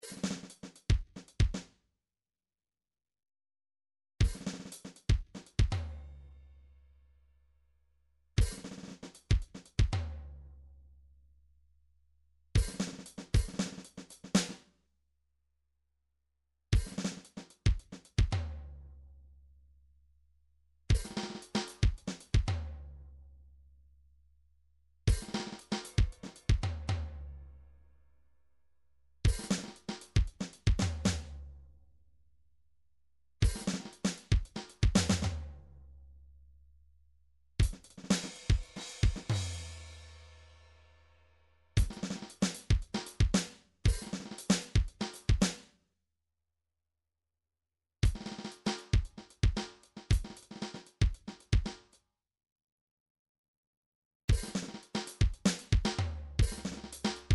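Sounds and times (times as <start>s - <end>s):
MIDI drums: 4.2s - 5.9s, 8.4s - 10.1s, 12.6s - 14.6s, 16.8s - 18.4s, 20.9s - 22.7s, 25.1s - 27.1s, 29.3s - 31.3s, 33.4s - 35.4s, 37.6s - 39.9s, 41.8s - 45.6s, 48.0s - 51.8s, 54.3s - 57.3s.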